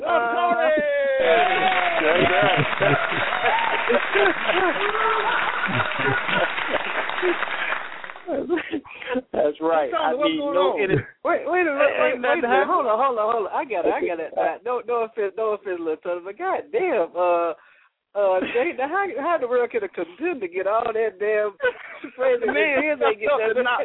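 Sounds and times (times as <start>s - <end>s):
voices shouting: 0.0s - 7.9s
laughter: 0.0s - 9.3s, 21.6s - 23.8s
audience applause after a performer is introduced: 0.7s - 8.5s
speech: 0.8s - 6.4s, 9.6s - 23.8s.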